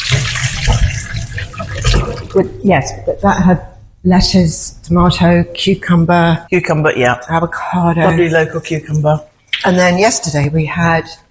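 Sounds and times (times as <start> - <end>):
tap water running while washing hands: 0.0 - 3.5
speech: 2.4 - 11.2.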